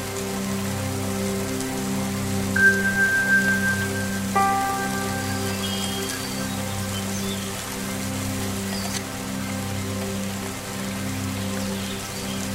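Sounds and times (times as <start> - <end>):
steady rain falling: 0.0 - 12.5
clear ringing tone of a bowl strike: 2.6 - 6.2
Tibetan singing bowls humming drone: 2.6 - 7.4
birds chirping: 2.6 - 7.6.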